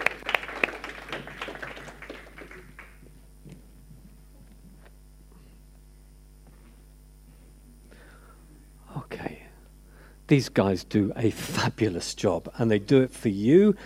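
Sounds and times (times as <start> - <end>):
audience clapping: 0.0 - 3.2
speech: 10.3 - 13.8.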